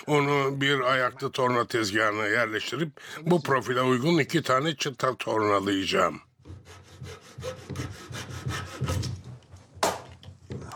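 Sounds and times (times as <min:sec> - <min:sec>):
speech: 0:00.0 - 0:08.0
small flush-cut saw sawing wood: 0:06.5 - 0:09.2.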